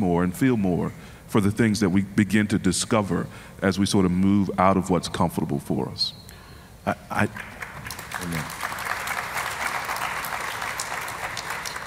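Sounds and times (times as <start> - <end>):
speech: 0.0 - 6.2, 6.8 - 7.5, 8.2 - 8.6
audience applause: 7.4 - 11.8.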